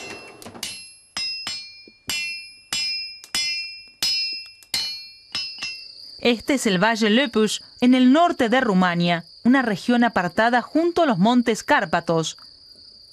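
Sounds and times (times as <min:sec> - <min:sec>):
hammer forging metal in workshop: 0:00.0 - 0:05.9
speech: 0:06.2 - 0:12.5.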